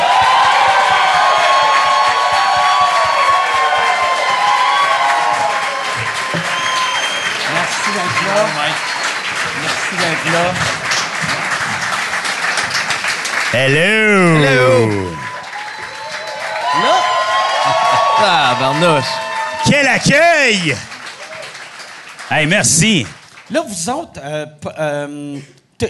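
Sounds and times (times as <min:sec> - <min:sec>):
whoops and cheers: 0:00.0 - 0:09.0, 0:13.6 - 0:21.6
loud sustained applause from a large audience: 0:00.0 - 0:23.8
speech: 0:08.3 - 0:08.9, 0:10.0 - 0:10.8, 0:13.5 - 0:15.2, 0:18.2 - 0:19.2, 0:19.9 - 0:20.9, 0:22.3 - 0:25.8
excited voices talking: 0:13.6 - 0:15.4, 0:16.6 - 0:20.9.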